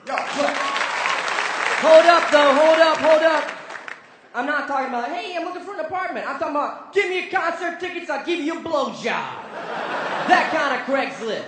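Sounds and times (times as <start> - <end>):
audience clapping at a stand-up comedy show: 0.0 - 4.3
speech: 1.8 - 3.6, 4.4 - 11.4
laughter: 9.4 - 11.4.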